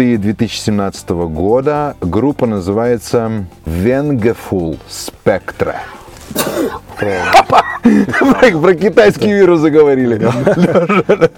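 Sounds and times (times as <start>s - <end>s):
speech: 0.0s - 11.3s
sneeze: 6.3s - 6.8s
laughter: 6.7s - 8.8s, 10.0s - 11.3s.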